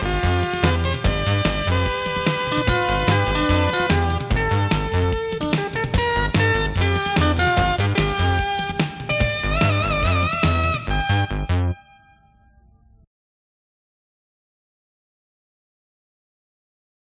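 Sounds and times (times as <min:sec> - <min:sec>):
dance music: 0:00.0 - 0:11.8.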